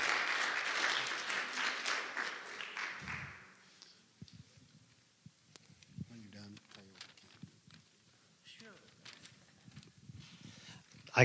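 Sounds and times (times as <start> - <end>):
audience applause: 0.0 - 3.6.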